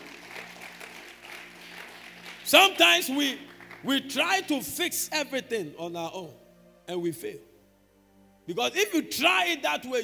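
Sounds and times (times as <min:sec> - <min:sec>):
audience clapping: 0:00.0 - 0:04.3
speech: 0:02.5 - 0:07.5, 0:08.5 - 0:10.0.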